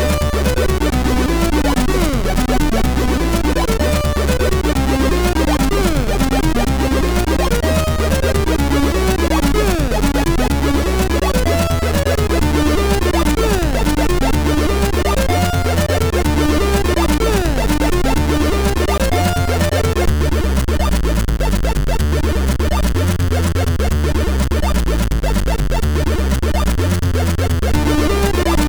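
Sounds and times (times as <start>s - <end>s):
chiptune music on MOS6581R3 sound chip: 0.0s - 28.6s.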